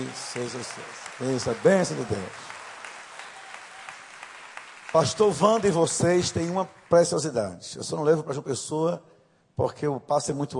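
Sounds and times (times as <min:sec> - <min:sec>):
audience applause: 0:00.0 - 0:07.2
speech: 0:00.1 - 0:02.6, 0:04.9 - 0:10.5.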